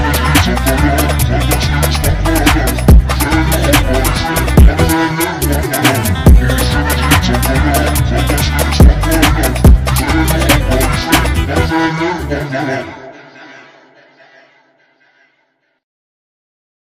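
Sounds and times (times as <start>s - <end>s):
drill music remix: 0.0s - 13.0s.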